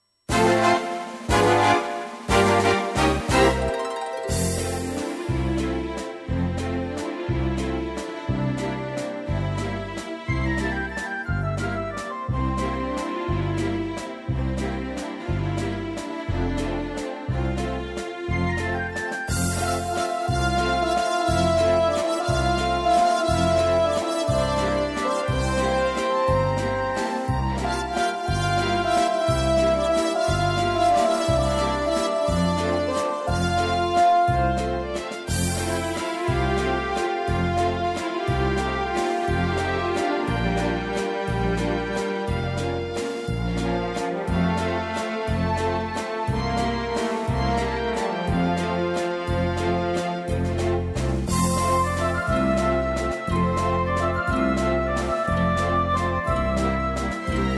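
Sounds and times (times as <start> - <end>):
waltz music: 0.3 - 57.5.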